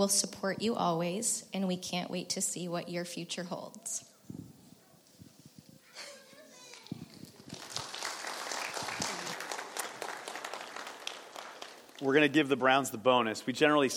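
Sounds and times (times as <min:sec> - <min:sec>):
speech: 0:00.0 - 0:04.1, 0:12.0 - 0:13.9
audience applause: 0:06.7 - 0:12.4.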